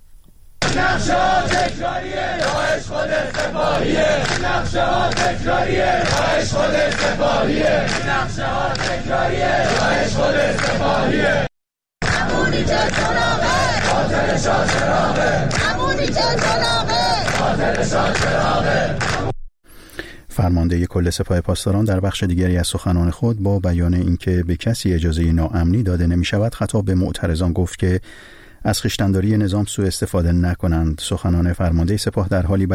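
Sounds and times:
crowd of students shouting protest slogans: 0.6 - 19.3
speech: 0.8 - 11.5, 12.5 - 19.3, 20.4 - 32.7.

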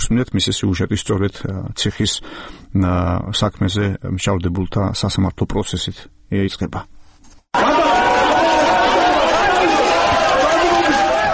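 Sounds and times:
speech: 0.0 - 7.7
courtroom crowd in Tbilisi cheering and shouting at a judge's decision: 7.6 - 11.3.

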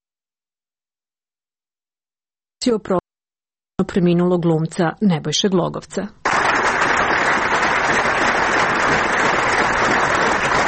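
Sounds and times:
speech: 2.6 - 3.0, 3.8 - 6.2
audience applause and ovations at the Yugoslav Drama Theatre farewell: 6.2 - 10.6.

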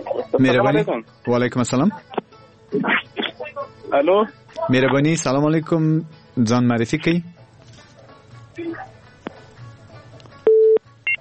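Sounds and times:
speech: 0.3 - 3.1, 3.9 - 7.3
telephone busy tone as a call-in caller is cut off: 10.5 - 11.1.

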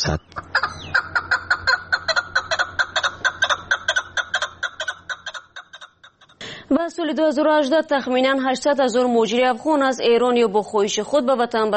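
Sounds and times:
speech: 0.0 - 0.4, 6.7 - 11.7
chukar partridge clucking calls: 0.0 - 6.4.

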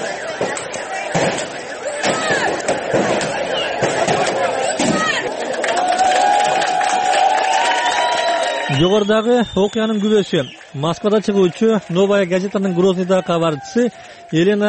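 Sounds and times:
sharp bangs and knocks: 0.0 - 5.3
crowd shouting at a protest rally in Grozny: 0.0 - 14.6
speech: 8.8 - 14.6.

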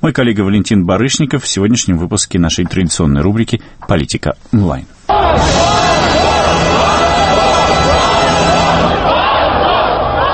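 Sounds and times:
speech: 0.0 - 5.8
dense crowd of demonstrators shouting and chanting: 5.1 - 10.3.

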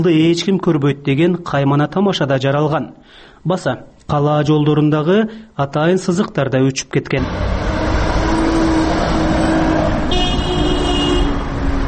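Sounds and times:
speech: 0.0 - 7.7
car traffic at a city intersection with a traffic light in Osh: 7.2 - 11.8
brief horn-like tone: 10.0 - 11.6.

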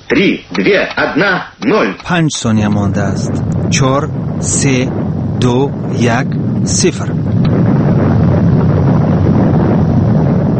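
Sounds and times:
speech: 0.1 - 7.2
underground nuclear explosion: 2.4 - 10.5.

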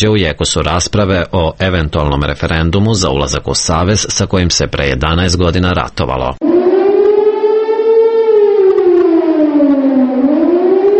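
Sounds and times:
speech: 0.0 - 6.6
air raid warning siren: 6.4 - 10.9.

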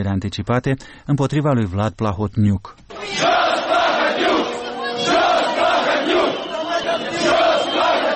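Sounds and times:
speech: 0.0 - 3.4
crowd of protesters demonstrating at Parliament: 2.9 - 8.1.

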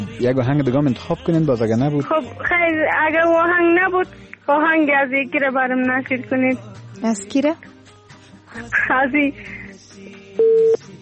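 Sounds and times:
speech: 0.2 - 7.8, 8.5 - 9.6, 10.4 - 10.8
telephone line tone after a caller's line drops: 10.4 - 10.8.

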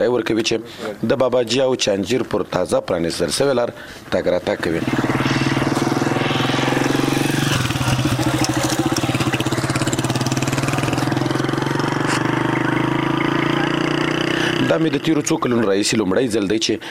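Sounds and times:
speech: 0.0 - 5.4, 14.8 - 16.9
ordinary light car engine driving along a side road from Chanjir to Babaji: 4.6 - 15.3.

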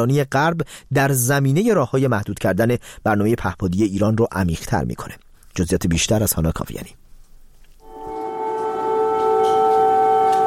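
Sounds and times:
speech: 0.0 - 7.0
air raid warning siren in Kyiv: 7.8 - 10.4.

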